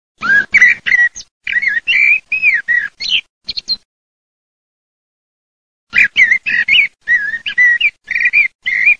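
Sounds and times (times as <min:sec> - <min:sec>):
blackbird singing: 0:00.2 - 0:03.8, 0:05.9 - 0:08.9.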